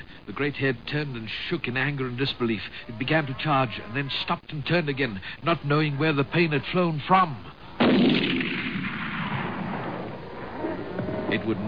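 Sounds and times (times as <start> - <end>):
speech: 0.4 - 8.3, 11.3 - 11.6
rifle shot: 7.8 - 10.2.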